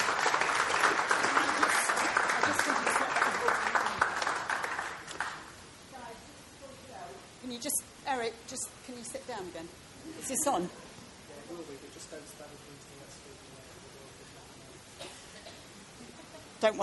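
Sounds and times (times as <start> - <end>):
audience round of applause: 0.0 - 5.6
speech: 8.3 - 10.8, 11.7 - 13.7, 16.6 - 16.8.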